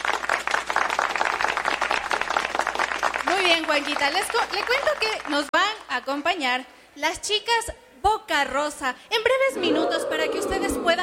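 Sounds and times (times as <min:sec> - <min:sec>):
audience applause: 0:00.0 - 0:05.3
speech: 0:03.5 - 0:11.0.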